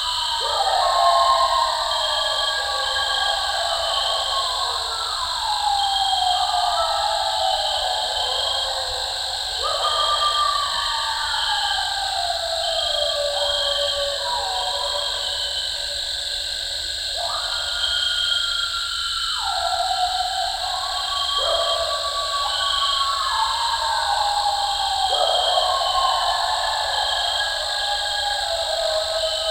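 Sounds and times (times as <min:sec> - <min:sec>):
eastern coyote howling: 0:00.0 - 0:16.0, 0:17.2 - 0:29.5.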